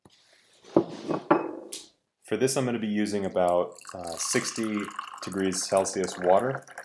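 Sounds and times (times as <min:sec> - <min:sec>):
speech: 0:02.3 - 0:06.8
dry tea leaves pouring into a ceramic vessel: 0:03.0 - 0:06.8.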